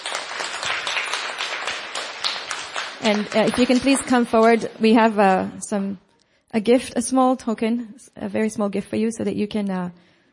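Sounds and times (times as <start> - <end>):
audience applause: 0.0 - 5.2
speech: 3.0 - 10.1.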